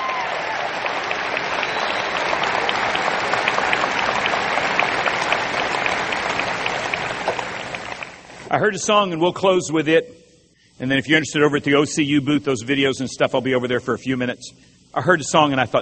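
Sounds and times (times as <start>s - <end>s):
audience applause: 0.0s - 8.2s
speech: 8.5s - 10.2s, 10.8s - 15.7s.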